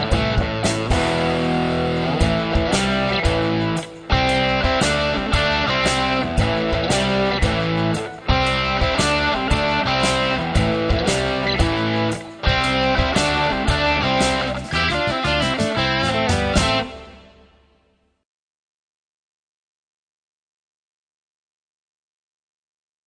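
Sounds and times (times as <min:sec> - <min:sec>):
rock and blues solos: 0:00.0 - 0:17.4.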